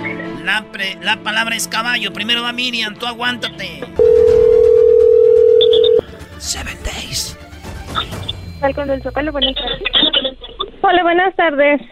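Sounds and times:
speech: 0:00.5 - 0:04.4, 0:06.4 - 0:11.9
telephone dialing tone: 0:04.0 - 0:06.0.

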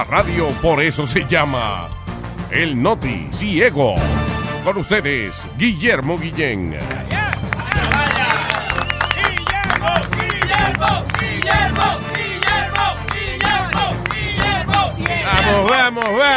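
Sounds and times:
speech: 0:00.0 - 0:07.2, 0:15.3 - 0:16.3
audience applause and cheering: 0:06.8 - 0:16.3.

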